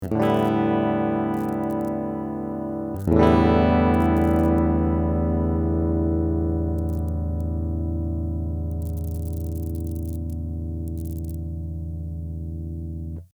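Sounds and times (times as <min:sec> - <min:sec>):
LED light noise: 0:00.0 - 0:13.2.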